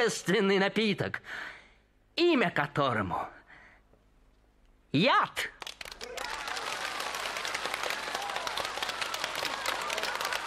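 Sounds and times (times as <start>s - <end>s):
speech: 0.0s - 1.6s, 2.2s - 3.4s, 4.9s - 5.6s
faint applause from a stage play audience: 5.6s - 10.4s.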